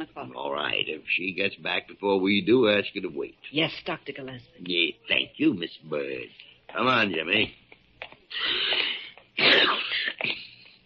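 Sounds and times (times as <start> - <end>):
speech: 0.0 - 7.6, 8.3 - 10.0
man sneezing: 8.3 - 10.2.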